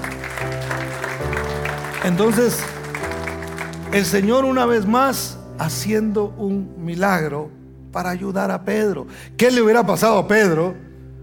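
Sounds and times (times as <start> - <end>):
audience applause: 0.0 - 4.6
keyboard or organ chords: 0.0 - 11.2
speech: 2.0 - 2.8, 3.9 - 10.8.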